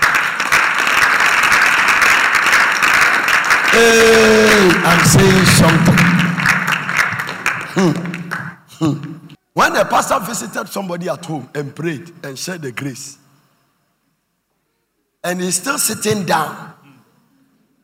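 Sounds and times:
audience clapping: 0:00.0 - 0:09.3
speech: 0:03.8 - 0:06.2, 0:07.8 - 0:08.1, 0:08.8 - 0:13.2, 0:15.2 - 0:16.8.

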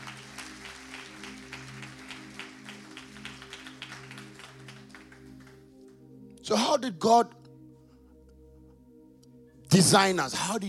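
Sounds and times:
audience clapping hands: 0:00.0 - 0:06.0
speech: 0:06.5 - 0:07.4, 0:09.8 - 0:10.6.

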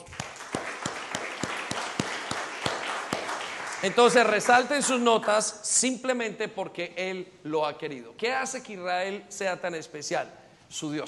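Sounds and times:
audience applause: 0:00.0 - 0:05.1
speech: 0:03.8 - 0:11.0.

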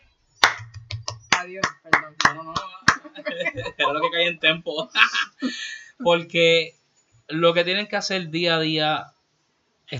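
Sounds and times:
low steady hum: 0:00.0 - 0:09.2
scattered hand claps: 0:00.4 - 0:03.8
voices murmuring: 0:01.4 - 0:06.7
speech: 0:01.4 - 0:09.2
laughter: 0:02.9 - 0:05.8.

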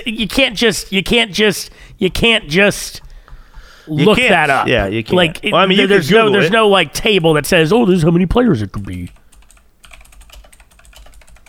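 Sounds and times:
speech: 0:00.0 - 0:03.0, 0:03.9 - 0:09.2
typing on a computer keyboard: 0:08.8 - 0:11.4.

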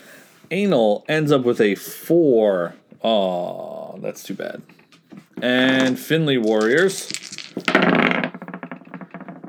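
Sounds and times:
speech: 0:00.5 - 0:04.8, 0:05.4 - 0:08.2
dice rolling on a table: 0:04.9 - 0:09.4.

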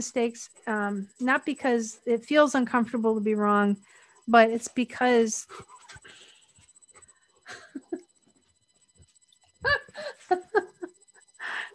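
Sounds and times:
speech: 0:00.0 - 0:06.2, 0:09.6 - 0:10.7
dog whimpering and panting on a person's shoulder: 0:05.5 - 0:06.2
laughter: 0:07.5 - 0:08.0, 0:09.6 - 0:11.6.

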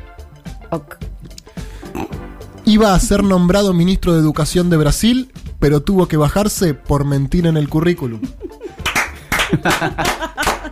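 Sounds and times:
speech: 0:00.7 - 0:01.1, 0:02.7 - 0:08.4, 0:09.5 - 0:10.3
laughter: 0:08.1 - 0:10.7
applause, clapping hands: 0:08.8 - 0:10.7.

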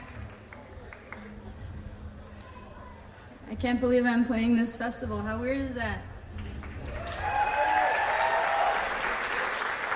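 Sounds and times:
festival crowd applause: 0:00.0 - 0:01.6, 0:06.4 - 0:09.9
speech: 0:03.5 - 0:06.1.

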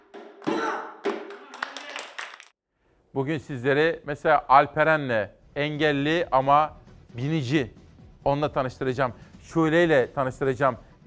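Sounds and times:
hand clapping: 0:00.0 - 0:02.6
speech: 0:03.1 - 0:11.0
busy tonal musical background: 0:05.3 - 0:11.0.

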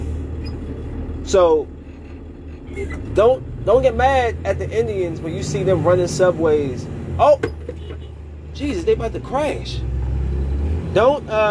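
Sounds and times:
low engine rumble: 0:00.0 - 0:11.4
speech: 0:01.3 - 0:01.8, 0:02.7 - 0:07.6, 0:08.6 - 0:09.9, 0:10.9 - 0:11.4
short light car horn honk: 0:07.7 - 0:08.2.

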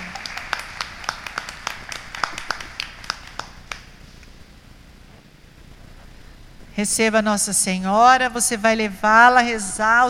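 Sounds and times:
audience clapping: 0:00.0 - 0:04.0
speech: 0:06.8 - 0:10.0.

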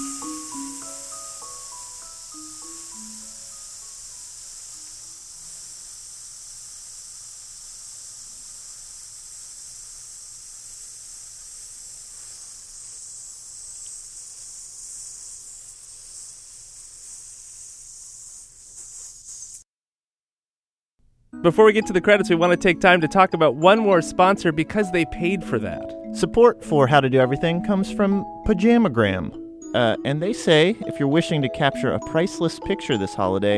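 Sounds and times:
voice imitating a snake's hiss: 0:00.0 - 0:19.7
speech: 0:21.4 - 0:33.5.

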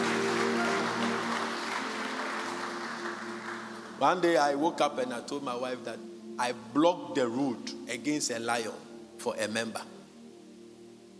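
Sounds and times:
audience clapping: 0:00.0 - 0:04.2
speech: 0:04.0 - 0:10.0.

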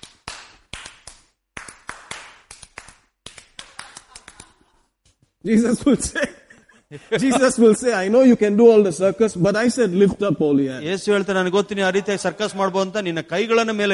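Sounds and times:
hand clapping: 0:00.0 - 0:05.3
laughter: 0:03.7 - 0:04.9, 0:05.5 - 0:08.1, 0:11.7 - 0:12.9
speech: 0:05.4 - 0:13.9.

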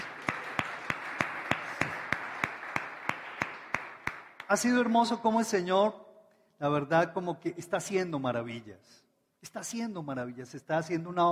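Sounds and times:
applause: 0:00.0 - 0:04.9
speech: 0:04.5 - 0:06.0, 0:06.6 - 0:11.3.

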